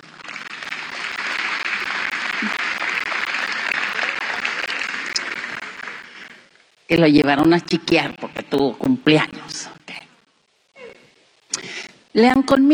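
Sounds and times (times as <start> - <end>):
audience applause: 0.0 - 6.6
speech: 2.4 - 2.7, 6.9 - 9.4, 12.2 - 12.7.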